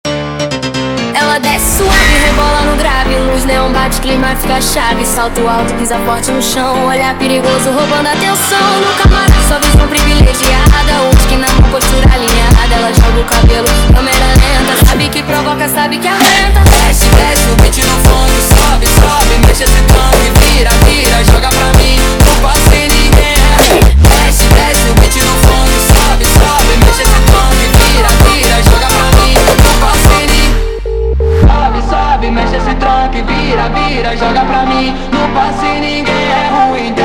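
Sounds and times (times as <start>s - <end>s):
phonk music: 0.1s - 37.0s.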